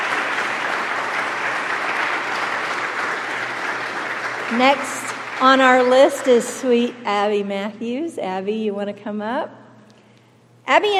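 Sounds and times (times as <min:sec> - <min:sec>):
audience applause: 0:00.0 - 0:06.9
speech: 0:04.5 - 0:09.6, 0:10.7 - 0:10.9.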